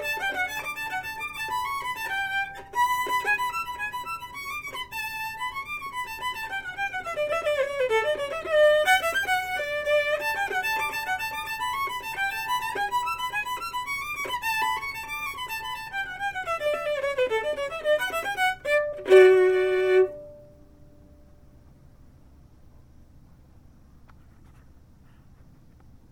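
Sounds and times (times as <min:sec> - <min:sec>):
fiddle playing a hornpipe: 0:00.0 - 0:20.5.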